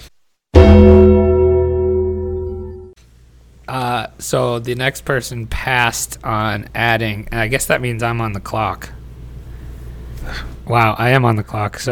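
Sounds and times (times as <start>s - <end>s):
deep wrestling entrance bell bong: 0.6s - 3.0s
speech: 3.7s - 9.0s, 10.3s - 11.9s.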